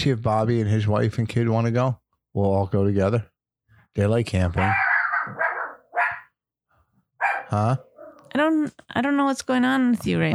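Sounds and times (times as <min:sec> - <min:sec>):
speech: 0:00.0 - 0:03.3, 0:04.0 - 0:05.4, 0:07.5 - 0:10.3
dog barking: 0:04.6 - 0:06.4, 0:07.2 - 0:08.3.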